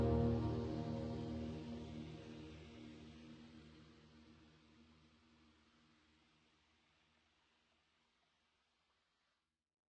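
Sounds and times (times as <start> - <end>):
ambient piano: 0.0 - 3.2.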